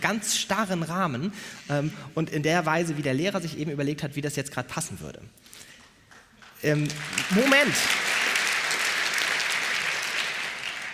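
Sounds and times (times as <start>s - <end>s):
speech: 0.0s - 5.7s, 6.6s - 8.0s
audience clapping: 6.1s - 10.9s.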